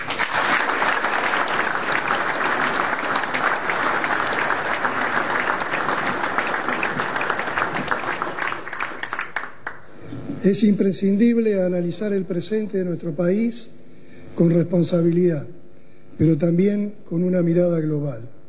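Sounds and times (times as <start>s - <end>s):
respectful audience applause: 0.0s - 9.9s
speech: 10.4s - 13.8s, 14.4s - 15.6s, 16.2s - 18.4s.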